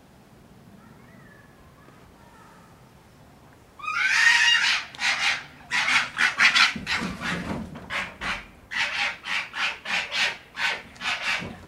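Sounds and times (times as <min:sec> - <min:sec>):
red fox rasping call: 0:03.8 - 0:11.6.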